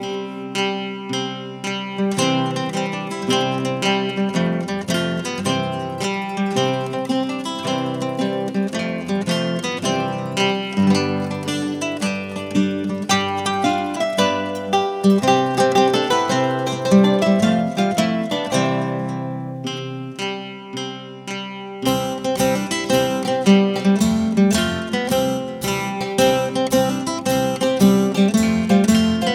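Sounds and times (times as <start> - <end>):
string music: 0.0 - 29.3.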